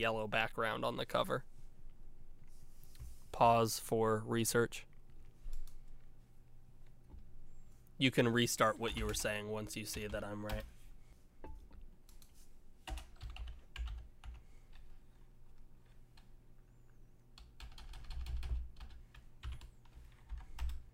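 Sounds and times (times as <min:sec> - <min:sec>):
speech: 0:00.0 - 0:01.5, 0:03.4 - 0:04.9, 0:08.0 - 0:10.8
typing on a computer keyboard: 0:12.9 - 0:14.8, 0:17.4 - 0:20.8.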